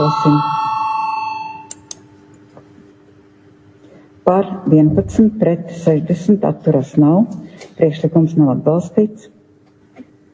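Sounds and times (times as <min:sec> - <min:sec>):
speech: 0:00.0 - 0:00.6, 0:04.3 - 0:09.4
bell rung to call a vote: 0:00.0 - 0:01.8.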